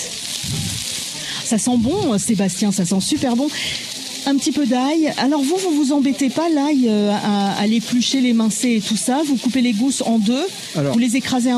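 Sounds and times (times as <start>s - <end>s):
low voice murmur: 0.0s - 1.3s
courgettes sizzling in a frying pan: 0.0s - 11.5s
speech: 1.5s - 11.5s.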